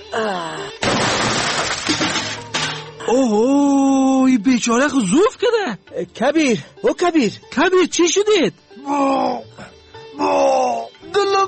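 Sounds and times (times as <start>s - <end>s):
speech: 0.1s - 0.6s, 3.1s - 3.8s, 4.4s - 11.4s
door being broken in: 0.8s - 3.0s.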